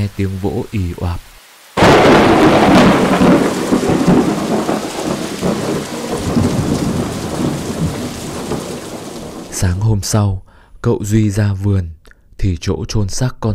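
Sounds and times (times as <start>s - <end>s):
speech: 0.0s - 1.3s, 2.2s - 4.5s, 9.6s - 13.5s
heavy rain: 0.0s - 9.8s
thunder: 1.8s - 9.6s.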